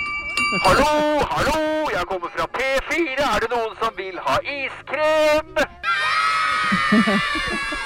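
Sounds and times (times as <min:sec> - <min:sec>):
laughter: 0:00.4 - 0:01.5, 0:06.6 - 0:07.8
speech: 0:00.5 - 0:06.0, 0:06.7 - 0:07.8
excited children shouting around ice cream truck: 0:05.8 - 0:07.8.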